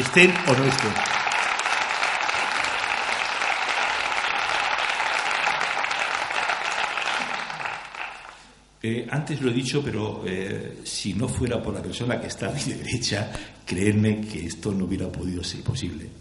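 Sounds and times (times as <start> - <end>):
speech: 0.0 - 1.1, 8.8 - 16.1
audience applause: 0.0 - 8.5.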